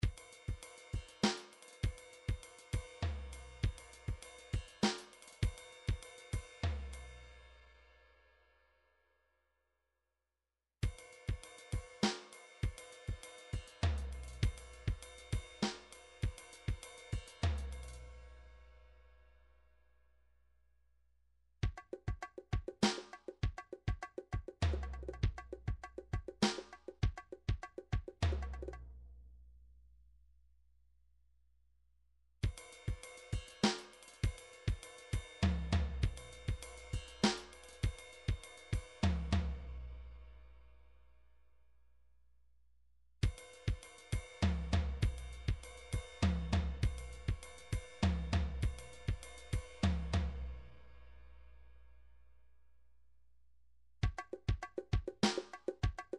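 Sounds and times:
midi drums: 0:00.0 - 0:07.0, 0:10.8 - 0:18.0, 0:21.6 - 0:28.9, 0:32.4 - 0:39.8, 0:43.2 - 0:50.6, 0:54.0 - 0:56.1.

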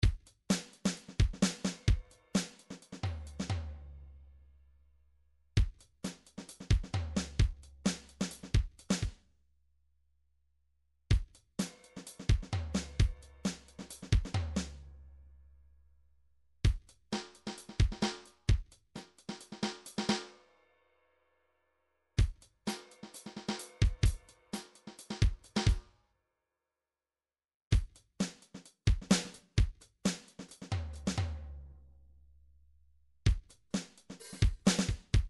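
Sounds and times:
MIDI drum pattern: 0:00.0 - 0:03.6, 0:05.6 - 0:09.2, 0:11.1 - 0:14.8, 0:16.6 - 0:20.2, 0:22.2 - 0:25.8, 0:27.7 - 0:31.4, 0:33.3 - 0:35.2.

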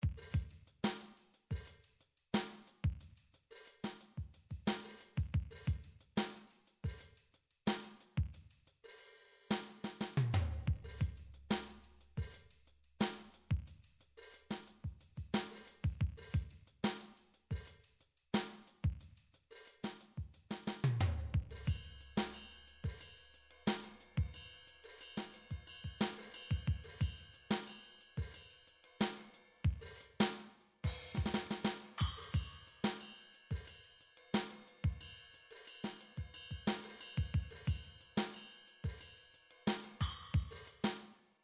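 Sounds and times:
funk MIDI drum beat: 0:00.0 - 0:08.6, 0:09.9 - 0:30.1, 0:30.9 - 0:33.8, 0:34.4 - 0:35.2, 0:35.8 - 0:40.9.

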